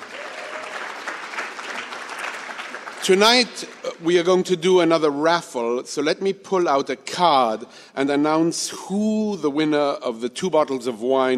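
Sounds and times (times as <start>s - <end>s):
crowd clapping: 0.0s - 4.5s
speech: 3.0s - 11.3s.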